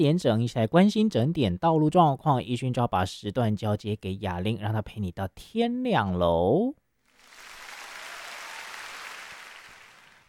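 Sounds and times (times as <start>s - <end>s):
speech: 0.0s - 6.8s
applause: 7.1s - 10.2s.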